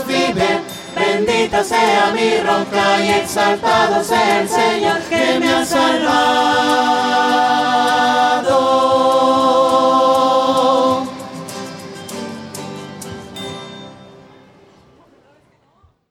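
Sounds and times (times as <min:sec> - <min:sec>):
voices: 0:00.0 - 0:11.2.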